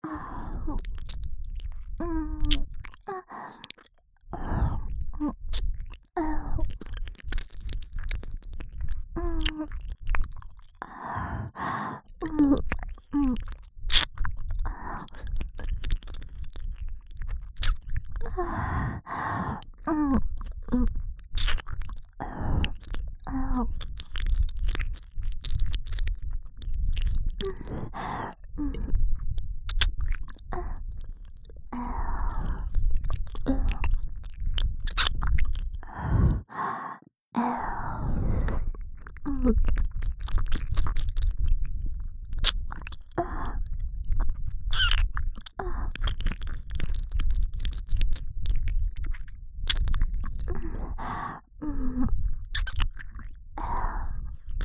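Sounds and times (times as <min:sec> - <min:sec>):
left ear licking: 0:00.7 - 0:36.9, 0:38.0 - 0:54.6.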